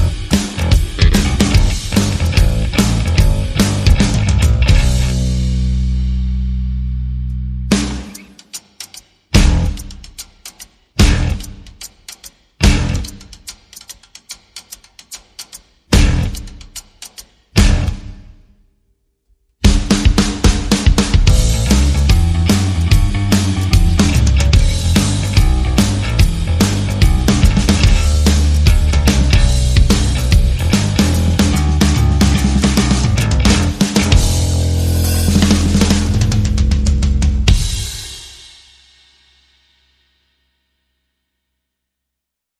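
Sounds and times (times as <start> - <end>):
percussion: 0.0 - 5.4, 7.7 - 18.3, 19.7 - 39.4
bass: 0.0 - 8.2, 9.3 - 10.0, 11.0 - 11.7, 12.6 - 13.4, 15.9 - 16.6, 17.6 - 18.2, 19.6 - 38.2
drums: 0.0 - 18.6, 19.6 - 40.5.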